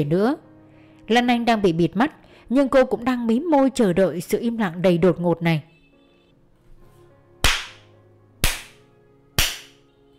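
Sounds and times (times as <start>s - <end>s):
speech: 0.0s - 0.5s, 1.1s - 5.7s
hard slaps: 7.4s - 8.8s, 9.4s - 9.8s.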